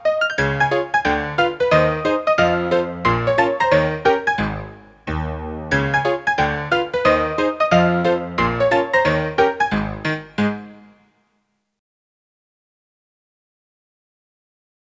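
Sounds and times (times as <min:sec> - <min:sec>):
honky-tonk piano: 0:00.0 - 0:11.0.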